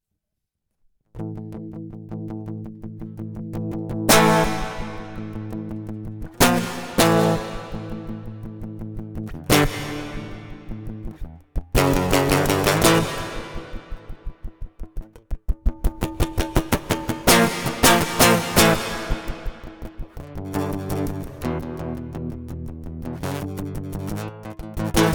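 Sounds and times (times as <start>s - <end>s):
acoustic guitar with gated reverb: 1.2s - 25.1s.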